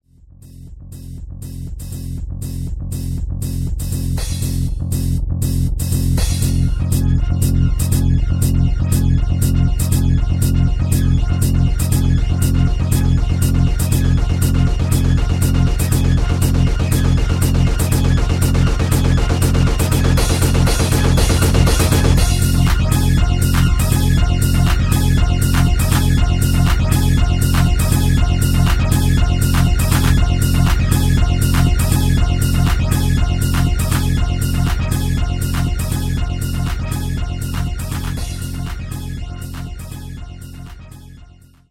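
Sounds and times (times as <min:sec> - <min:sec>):
trance music: 0:00.4 - 0:41.6.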